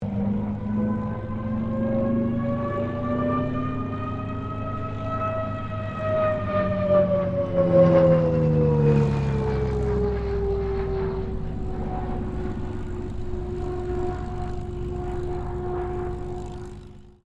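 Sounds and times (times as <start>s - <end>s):
CA-13 Boomerang aircraft passing: 0.0s - 17.2s.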